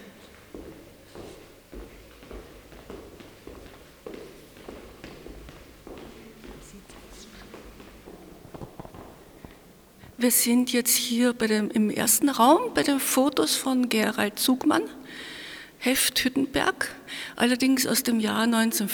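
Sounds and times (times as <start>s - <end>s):
footsteps walking through an exhibition at the MMKK art museum: 0.0s - 10.2s
speech: 10.2s - 18.9s.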